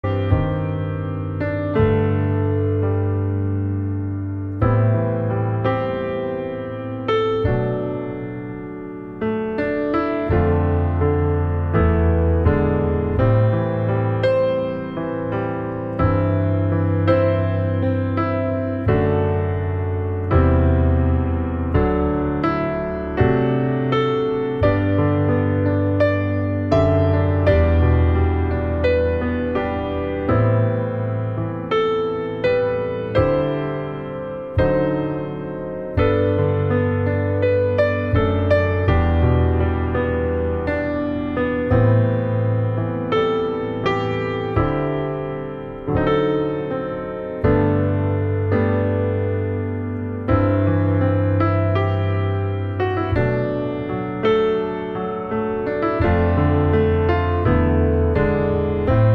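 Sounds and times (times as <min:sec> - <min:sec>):
solo pianoforte: 0:00.0 - 0:59.1.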